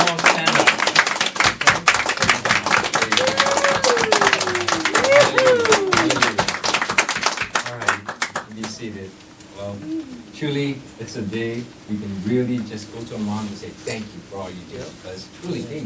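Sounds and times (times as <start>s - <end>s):
audience applause for mothers: 0.0s - 8.8s
cheers and voices: 3.0s - 6.4s
speech: 10.4s - 15.8s.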